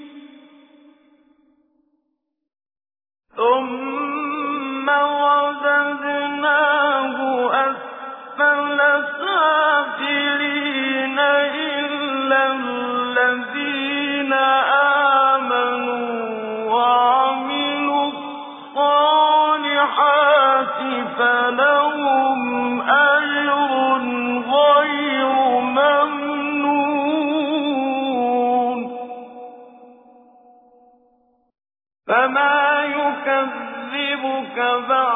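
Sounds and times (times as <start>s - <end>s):
tajweed recitation of a Quran surah: 0.0s - 0.8s, 3.4s - 29.9s, 32.1s - 35.1s.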